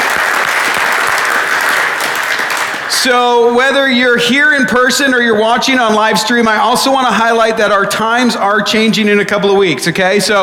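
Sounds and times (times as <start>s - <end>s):
church congregation applauding to welcome live-stream viewers: 0.0s - 7.0s
speech: 3.0s - 10.4s.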